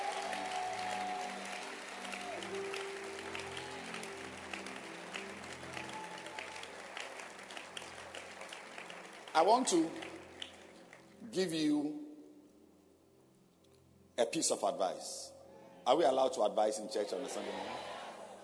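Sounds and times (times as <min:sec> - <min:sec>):
audience clapping hands: 0:00.0 - 0:11.3
speech: 0:09.4 - 0:10.1, 0:11.4 - 0:12.0, 0:14.3 - 0:15.3, 0:15.9 - 0:17.9.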